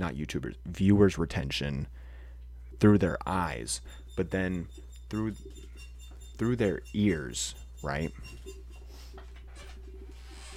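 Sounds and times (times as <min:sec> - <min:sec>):
speech: 0:00.0 - 0:02.1, 0:02.8 - 0:05.7, 0:06.4 - 0:08.6
dog scratching: 0:04.0 - 0:10.5.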